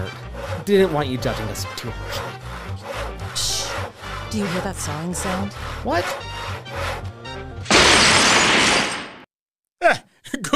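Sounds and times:
speech: 0.0 - 2.4, 4.3 - 6.8
chandelier falling and shattering: 7.6 - 9.3.

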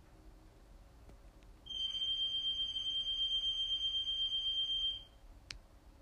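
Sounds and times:
high-pitched electronic alarm tone: 1.7 - 5.2.

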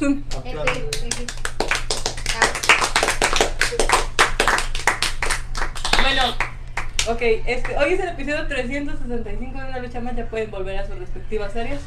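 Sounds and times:
speech: 0.0 - 1.4, 7.1 - 11.8
hand clapping: 0.3 - 7.2.

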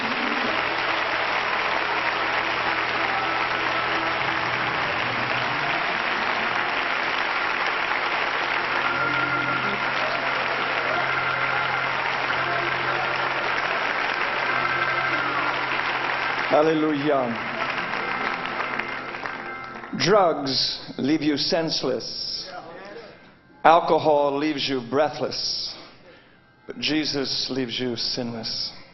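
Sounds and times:
audience applause: 0.0 - 20.2
speech: 16.6 - 17.6, 20.0 - 22.4, 23.6 - 25.6, 26.8 - 28.8.

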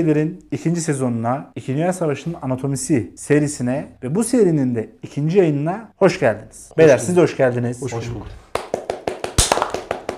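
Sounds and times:
speech: 0.0 - 8.4
hand clapping: 8.5 - 10.1.

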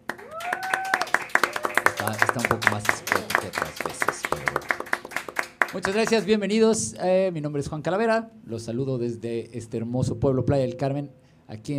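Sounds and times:
audience applause: 0.0 - 6.3
speech: 2.0 - 4.0, 5.7 - 11.7.

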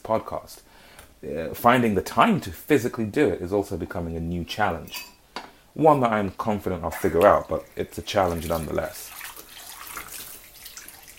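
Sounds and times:
speech: 0.1 - 5.2, 5.8 - 9.2
kitchen tap running into a sink while washing dishes: 7.0 - 11.1.

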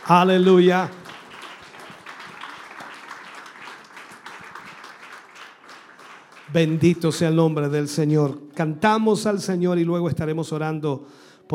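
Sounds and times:
audience applauding in praise: 0.0 - 7.4
speech: 0.1 - 1.0, 6.5 - 11.5.

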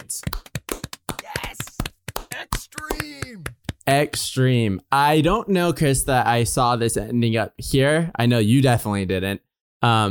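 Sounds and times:
people clapping: 0.0 - 4.3
speech: 0.1 - 0.4, 2.7 - 10.0
long sliding vocal cry: 1.2 - 3.5.

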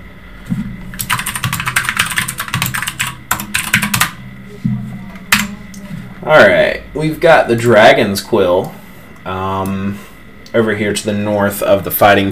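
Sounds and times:
typing on a computer keyboard: 1.0 - 4.2, 5.3 - 5.5
speech: 6.2 - 12.3.

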